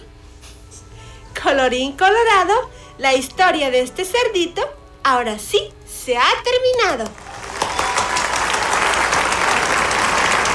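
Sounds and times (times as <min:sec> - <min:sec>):
speech: 0:01.4 - 0:07.2
crowd applauding: 0:07.0 - 0:10.5.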